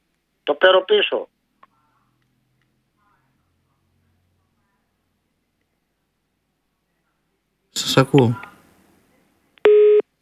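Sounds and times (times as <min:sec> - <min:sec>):
speech: 0:00.5 - 0:01.3, 0:07.9 - 0:08.5
telephone line tone after caller hangs up: 0:09.7 - 0:10.0.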